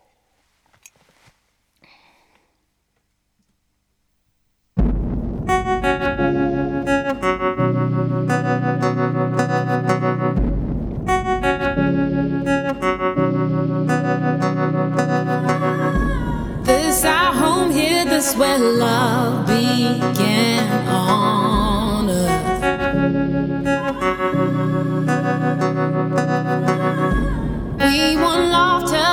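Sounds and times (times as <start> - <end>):
music remix playing: 5.1 - 18.7, 19.3 - 29.1.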